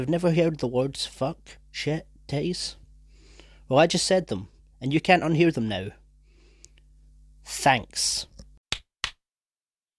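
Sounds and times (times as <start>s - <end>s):
speech: 0.0s - 2.8s, 3.7s - 6.0s, 7.4s - 8.3s
hand claps: 8.7s - 9.2s.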